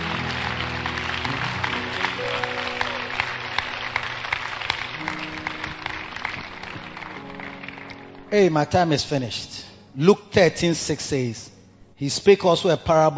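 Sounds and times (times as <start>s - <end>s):
audience clapping: 0.0s - 8.3s
speech: 8.3s - 13.1s.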